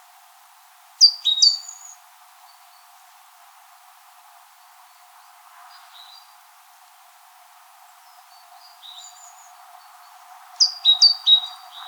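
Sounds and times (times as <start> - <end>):
great tit high down-slurred notes: 1.0 - 2.0, 10.6 - 11.8.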